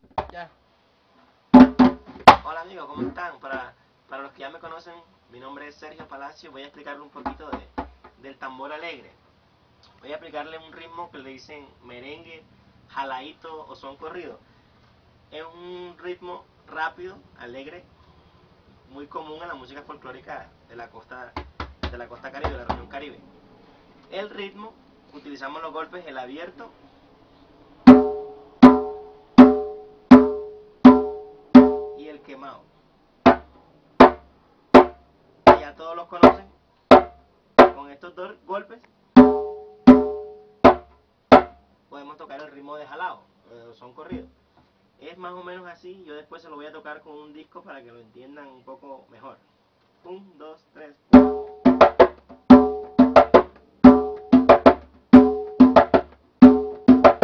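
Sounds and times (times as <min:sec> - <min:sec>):
drum playing: 0:01.6 - 0:02.4, 0:27.8 - 0:32.1, 0:33.2 - 0:37.8, 0:39.2 - 0:41.6, 0:51.2 - 0:57.2.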